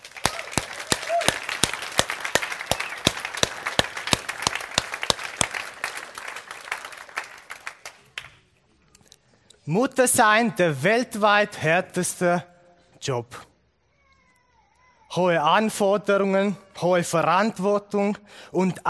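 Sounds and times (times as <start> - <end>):
audience applause: 0.0 - 8.3
speech: 9.7 - 13.4, 15.2 - 18.8.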